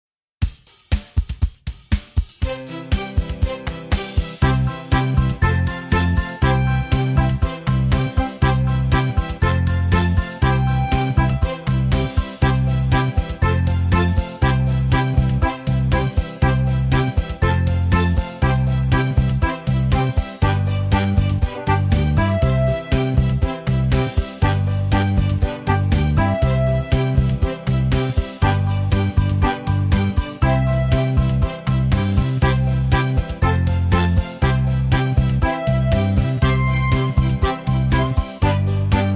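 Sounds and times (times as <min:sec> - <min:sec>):
instrumental music: 0:00.4 - 0:39.1.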